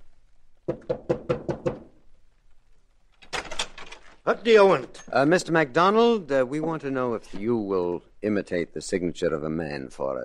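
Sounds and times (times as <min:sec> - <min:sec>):
speech: 0:00.7 - 0:01.2, 0:04.3 - 0:10.2
knocking on a door: 0:00.7 - 0:02.0.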